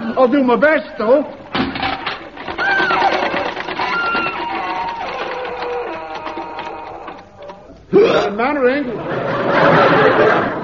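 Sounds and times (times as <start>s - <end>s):
speech: 0.2s - 1.4s, 8.2s - 10.6s
farm machine engine running: 1.8s - 7.8s
laughter: 8.0s - 10.6s.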